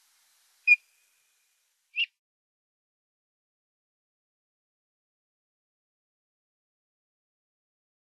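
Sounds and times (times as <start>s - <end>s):
Eurasian bullfinch piping soft falling whistles: 0.7s - 0.9s, 2.0s - 2.2s.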